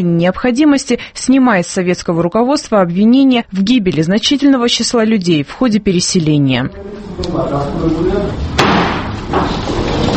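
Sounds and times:
speech: 0:00.0 - 0:09.6
room noise: 0:00.0 - 0:10.1
murmuring voices: 0:06.7 - 0:08.5
judge's wooden gavel strike: 0:08.6 - 0:09.6.

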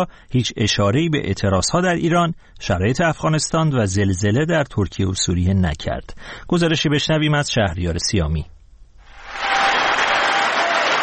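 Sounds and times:
speech: 0:00.0 - 0:08.6
applause for Joe Biden in US Congress before his annual speech: 0:09.2 - 0:11.0.

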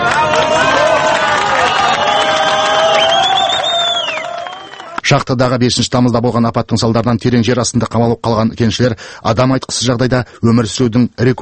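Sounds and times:
high whistles: 0:00.0 - 0:05.0
people shouting: 0:00.0 - 0:05.0
crowd cheering as the first trapped Chilean miner is hoisted from the mine: 0:00.0 - 0:05.1
speech: 0:05.1 - 0:11.4.

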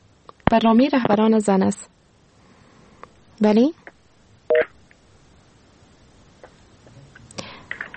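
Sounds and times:
speech: 0:00.5 - 0:02.0, 0:03.4 - 0:03.8
telephone call connecting tone: 0:04.5 - 0:04.7.

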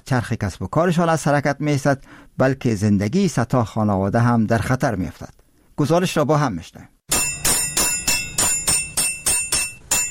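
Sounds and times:
speech: 0:00.1 - 0:06.9
hammer striking sheet metal in workshop: 0:07.1 - 0:10.1.

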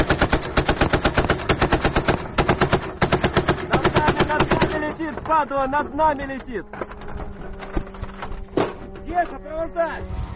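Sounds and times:
anti-aircraft gunfire: 0:00.0 - 0:05.0
speech: 0:05.4 - 0:06.9, 0:09.2 - 0:10.2.

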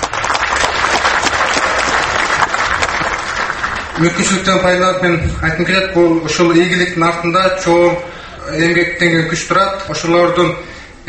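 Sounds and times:
audience applause at an award ceremony: 0:00.0 - 0:04.5
speech: 0:04.0 - 0:11.0.

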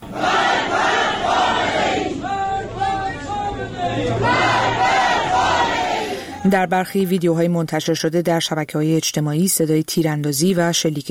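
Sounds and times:
protesters chanting slogans at a mourning ceremony: 0:00.0 - 0:06.5
speech: 0:06.4 - 0:11.0.

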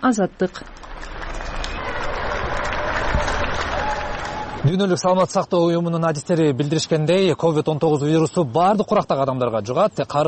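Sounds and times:
speech: 0:00.0 - 0:01.1, 0:04.6 - 0:10.2
people clapping to support doctors during the COVID-19 epidemic in Europe: 0:00.4 - 0:05.4.

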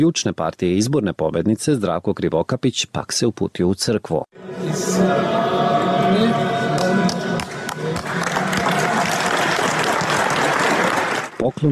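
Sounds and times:
speech: 0:00.0 - 0:06.6, 0:11.4 - 0:11.6
crowd noise in a church: 0:04.4 - 0:11.6
crowd applauding in a church: 0:06.6 - 0:11.6.

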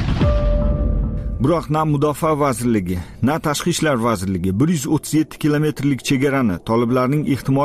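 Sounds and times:
steady tone: 0:00.2 - 0:02.6
artillery fire during military training exercises: 0:01.3 - 0:07.6
speech: 0:01.4 - 0:07.6.

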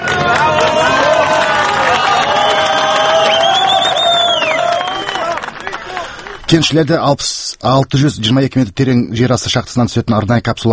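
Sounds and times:
crowd cheering and shouting as first rescued miner is brought up: 0:00.0 - 0:06.4
speech: 0:06.5 - 0:10.7.

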